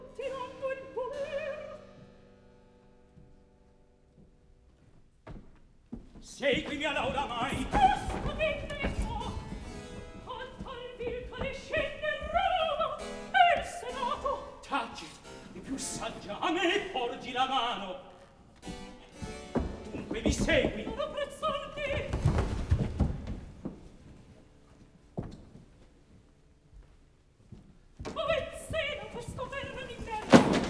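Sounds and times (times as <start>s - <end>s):
opera recitative: 0.0s - 2.0s, 6.2s - 23.1s, 28.1s - 30.6s.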